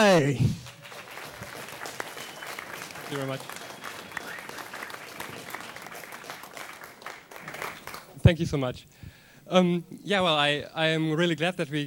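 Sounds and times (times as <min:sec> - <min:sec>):
speech: 0:00.0 - 0:00.6, 0:03.1 - 0:03.6, 0:08.3 - 0:11.8
audience applause welcoming the head of organization at the opening of DebConf: 0:00.0 - 0:08.2.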